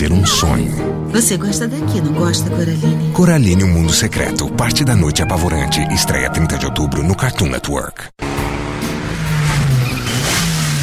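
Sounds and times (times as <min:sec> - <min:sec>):
speech: 0:00.1 - 0:08.4
Mitsubishi Lancer car engine revving: 0:08.2 - 0:10.8.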